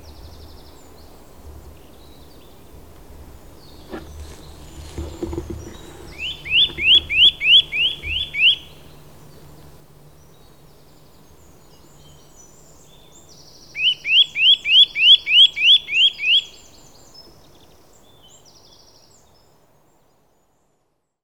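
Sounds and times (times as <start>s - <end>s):
Eurasian nuthatch Sitta europaea rising whistled notes: 6.1s - 8.8s, 13.8s - 16.6s.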